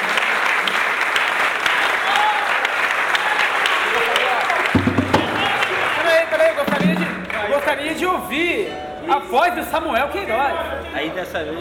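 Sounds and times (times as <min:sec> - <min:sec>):
applause: 0:00.0 - 0:07.8
speech: 0:07.8 - 0:11.5.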